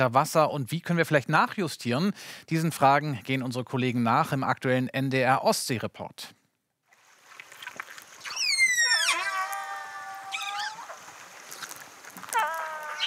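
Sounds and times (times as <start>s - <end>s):
speech: 0.0s - 6.4s
whale calls: 8.2s - 11.2s, 12.2s - 13.0s.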